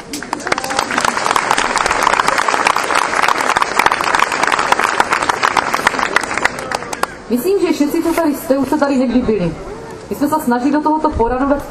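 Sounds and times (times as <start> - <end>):
audience applause: 0.0 - 7.2
speech: 7.3 - 11.6.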